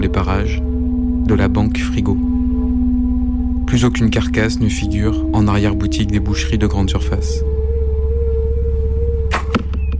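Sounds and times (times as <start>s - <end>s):
low steady hum: 0.0s - 9.9s
speech: 0.2s - 2.3s, 3.7s - 7.5s
arrow shot from a bow: 9.3s - 9.8s.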